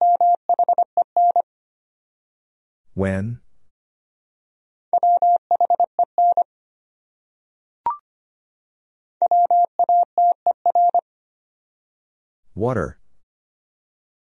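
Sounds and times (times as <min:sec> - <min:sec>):
Morse code tones: 0:00.0 - 0:01.4, 0:05.0 - 0:06.5, 0:09.2 - 0:11.0
speech: 0:03.0 - 0:03.4, 0:12.6 - 0:13.0.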